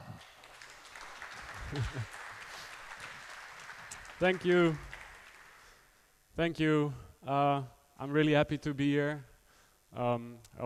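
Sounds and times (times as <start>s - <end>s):
audience applause: 0.0s - 5.8s
speech: 1.7s - 2.2s, 4.2s - 4.9s, 6.4s - 9.3s, 9.9s - 10.6s.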